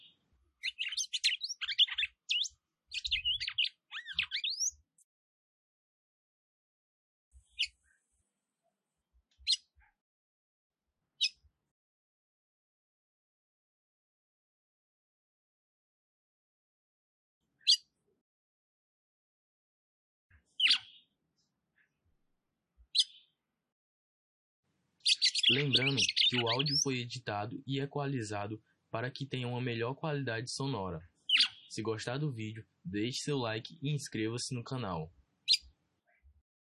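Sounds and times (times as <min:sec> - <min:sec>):
female red-cowled cardinal (galo-campina) song: 0:00.0 - 0:05.0, 0:07.3 - 0:08.1, 0:09.4 - 0:10.0, 0:11.2 - 0:11.5, 0:17.6 - 0:18.0, 0:20.3 - 0:21.2, 0:22.9 - 0:23.4, 0:25.0 - 0:36.4
speech: 0:25.1 - 0:31.1, 0:31.7 - 0:35.2.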